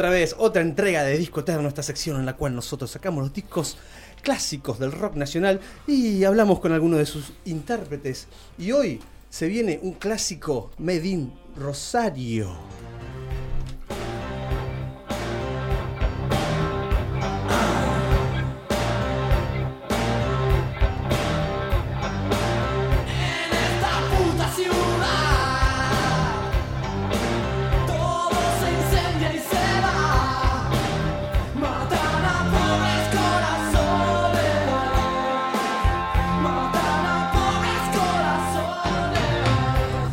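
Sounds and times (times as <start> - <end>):
speech: 0.0 - 12.9
keyboards: 1.1 - 40.1
distorted electric guitars: 12.6 - 40.1
loud Argentine rock song from 1987 with furious shouted vocals: 14.4 - 40.1.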